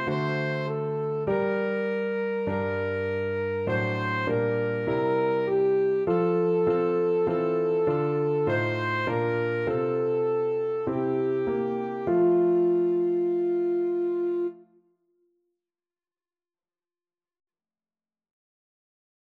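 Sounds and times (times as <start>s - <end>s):
alto saxophone playing a hymn: 0.0s - 14.6s.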